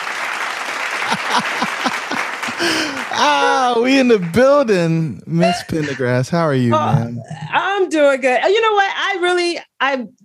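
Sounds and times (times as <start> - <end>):
clapping: 0.0 - 4.8
laughter: 0.9 - 7.5
speech: 2.6 - 10.2.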